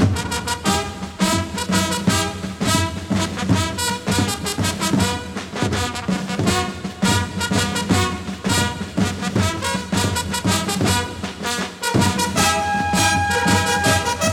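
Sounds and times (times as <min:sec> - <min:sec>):
rumba music: 0:00.2 - 0:14.3.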